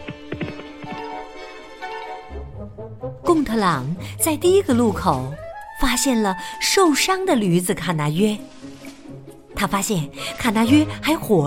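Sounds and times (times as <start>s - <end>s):
horse hooves galloping: 0.0s - 1.4s
speech: 3.4s - 8.6s, 9.6s - 11.4s.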